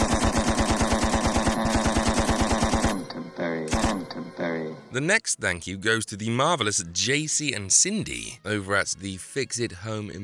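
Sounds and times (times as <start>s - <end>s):
machine-gun sound effect firing automatic bursts: 0.0s - 3.1s, 3.7s - 4.1s
speech: 5.0s - 10.2s.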